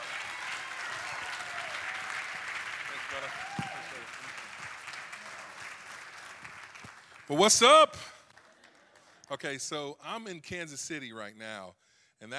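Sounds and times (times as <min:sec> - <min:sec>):
voices cheering: 0:00.0 - 0:05.9
church congregation applauding to welcome a guest pastor: 0:00.0 - 0:09.3
speech: 0:03.2 - 0:04.4, 0:07.3 - 0:08.1, 0:09.3 - 0:12.3.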